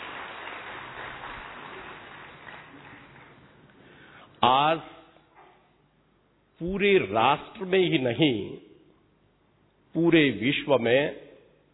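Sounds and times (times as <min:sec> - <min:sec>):
audience applause: 0:00.0 - 0:03.7
speech: 0:04.4 - 0:05.0, 0:06.6 - 0:08.6, 0:10.0 - 0:11.2.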